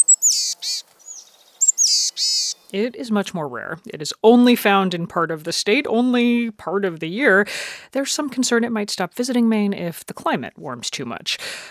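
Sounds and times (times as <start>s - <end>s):
Boreal Chickadee wheezy calls: 0.0s - 2.7s
speech: 2.7s - 11.6s.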